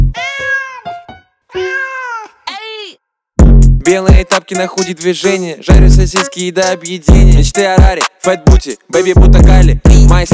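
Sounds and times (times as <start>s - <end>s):
cat meowing: 0.1s - 2.4s
speech: 3.9s - 10.3s.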